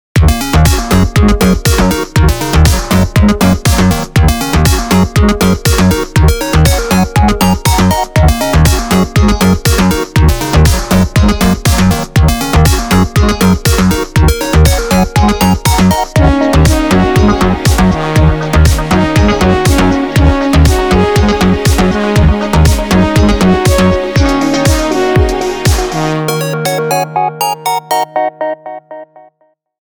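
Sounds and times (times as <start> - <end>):
disco music: 0.2 - 29.2.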